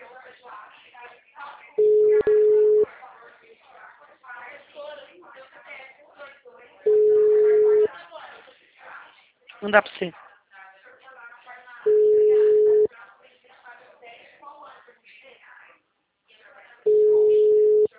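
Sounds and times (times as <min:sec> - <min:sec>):
telephone ringback tones on an unanswered phone call: 0:01.8 - 0:02.9, 0:06.9 - 0:07.9, 0:11.9 - 0:12.9, 0:16.9 - 0:17.9
speech: 0:09.6 - 0:10.2.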